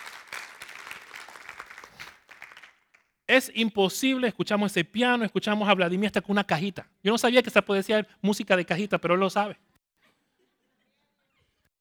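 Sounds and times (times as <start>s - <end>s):
audience applauding: 0.0s - 3.1s
speech: 3.3s - 9.7s.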